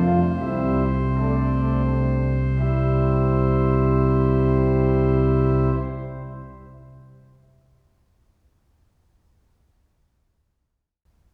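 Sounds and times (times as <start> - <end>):
organ prelude played by an organist: 0.0 - 7.4.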